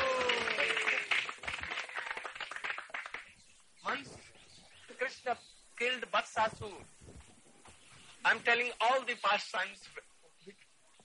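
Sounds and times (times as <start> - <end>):
hand clapping: 0.0 - 3.3
speech: 5.3 - 7.0, 8.2 - 10.6.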